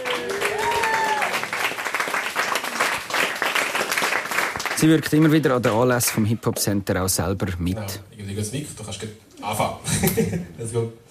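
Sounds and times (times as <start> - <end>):
audience applause: 0.0 - 5.1
speech: 4.8 - 11.0.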